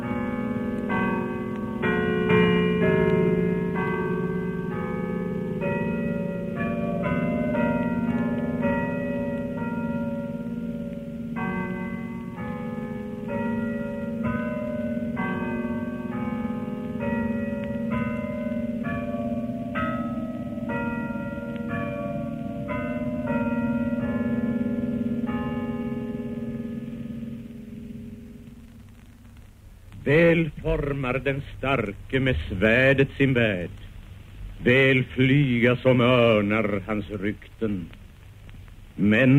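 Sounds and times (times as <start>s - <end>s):
bells ringing from the city hall tower: 0.0s - 28.5s
speech: 30.1s - 33.8s, 34.6s - 38.0s, 39.0s - 39.3s.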